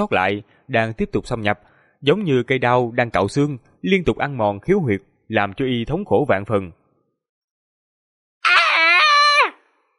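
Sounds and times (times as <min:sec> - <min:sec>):
speech: 0:00.0 - 0:06.8
man screaming in pain: 0:08.4 - 0:09.6.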